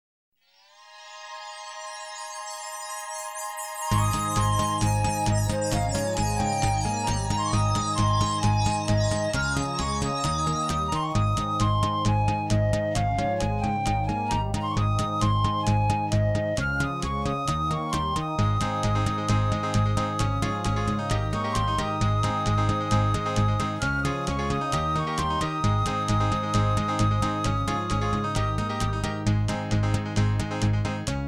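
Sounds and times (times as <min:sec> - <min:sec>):
children's theme music: 0:00.6 - 0:31.1.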